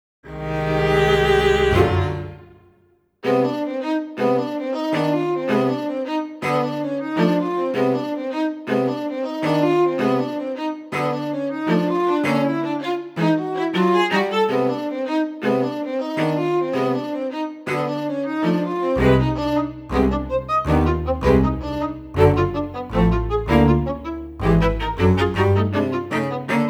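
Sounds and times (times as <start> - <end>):
string quartet: 0.3 - 26.6.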